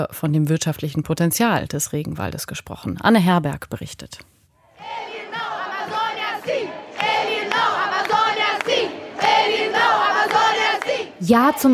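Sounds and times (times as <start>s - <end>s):
speech: 0.0s - 5.1s, 11.3s - 11.7s
protest crowd chanting in Rio de Janeiro: 4.6s - 11.7s.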